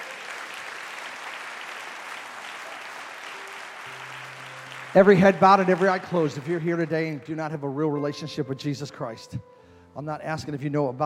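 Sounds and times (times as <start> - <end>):
audience clapping in praise: 0.0 - 7.8
speech: 4.9 - 11.0.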